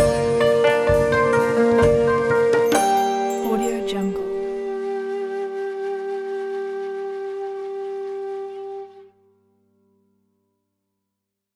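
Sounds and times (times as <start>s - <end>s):
Japanese traditional music: 0.0s - 9.0s.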